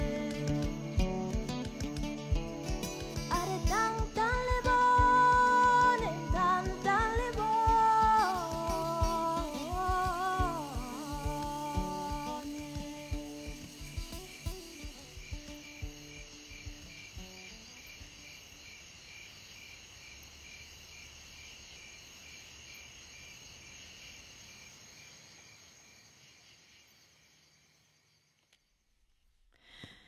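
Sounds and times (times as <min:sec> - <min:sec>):
plucked musical notes: 0:00.0 - 0:14.1
crickets chirping at nightfall in a music track: 0:00.0 - 0:29.0.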